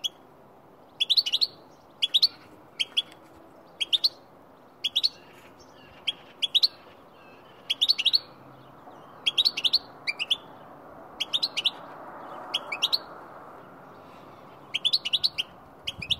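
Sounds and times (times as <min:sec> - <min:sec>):
goldfinch calling: 0:01.0 - 0:03.2, 0:04.8 - 0:08.4, 0:09.1 - 0:10.6, 0:11.2 - 0:11.8, 0:12.5 - 0:13.1, 0:14.7 - 0:16.1.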